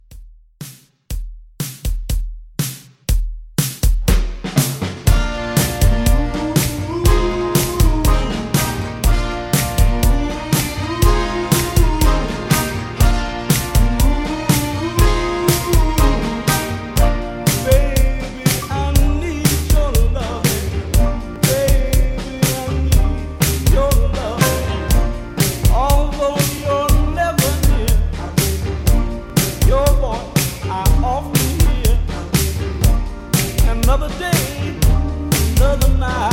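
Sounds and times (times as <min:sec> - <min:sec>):
1960s pop drum loop: 0:00.0 - 0:36.3.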